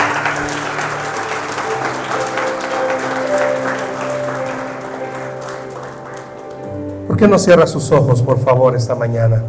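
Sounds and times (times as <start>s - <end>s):
audience applause: 0.0s - 6.8s
faint sustained musical tone: 0.0s - 9.4s
speech: 7.2s - 9.4s.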